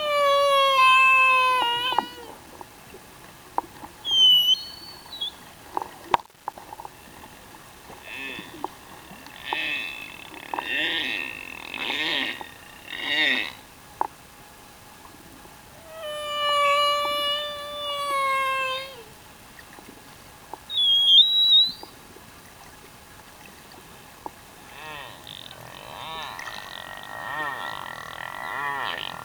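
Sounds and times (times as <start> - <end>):
humpback whale singing in Tonga: 0.0 - 2.4, 4.0 - 5.4, 8.0 - 13.7, 15.7 - 19.2, 20.7 - 22.0, 24.6 - 29.2.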